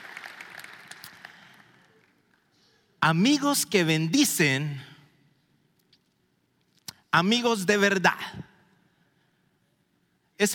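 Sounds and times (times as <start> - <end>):
audience applause: 0.0 - 2.1
speech: 3.0 - 4.9, 7.1 - 8.5, 10.4 - 10.5.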